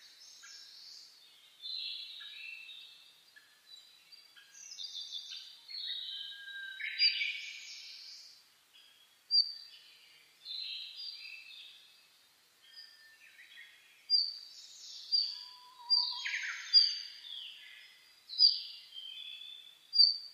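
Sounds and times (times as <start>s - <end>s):
several birds singing at dawn: 0.0s - 20.3s.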